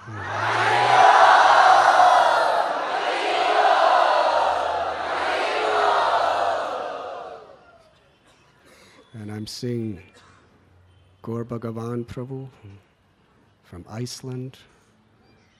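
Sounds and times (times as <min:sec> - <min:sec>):
large audience chanting together loudly: 0:00.0 - 0:07.6
speech: 0:11.2 - 0:12.9, 0:13.7 - 0:14.8.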